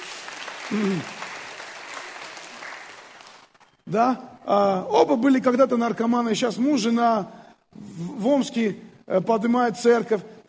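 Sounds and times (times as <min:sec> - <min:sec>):
audience applause: 0:00.0 - 0:03.9
speech: 0:00.7 - 0:01.2, 0:03.9 - 0:10.4.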